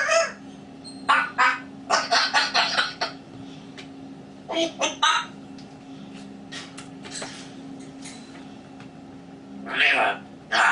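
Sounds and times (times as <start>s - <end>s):
grey parrot hoarse honking calls: 0.0s - 0.4s, 1.1s - 3.2s, 4.5s - 5.4s, 9.7s - 10.7s
low steady hum: 0.0s - 10.7s.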